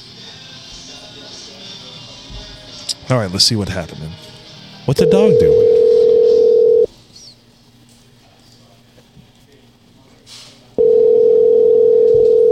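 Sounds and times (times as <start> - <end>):
speech: 3.1 - 4.2, 4.9 - 5.8
outgoing call telephone ringing tone: 4.9 - 6.9, 10.8 - 12.4.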